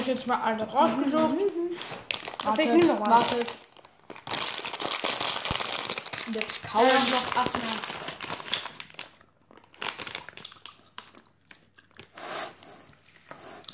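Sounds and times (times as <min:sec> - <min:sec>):
speech: 0:00.0 - 0:03.6, 0:06.3 - 0:07.9
candy wrapper being crinkled and torn open: 0:01.4 - 0:12.2.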